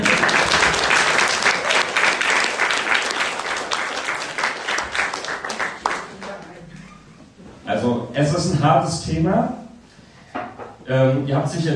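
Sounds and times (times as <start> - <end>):
audience applause: 0.0 - 6.6
speech: 8.4 - 9.6, 10.9 - 11.7.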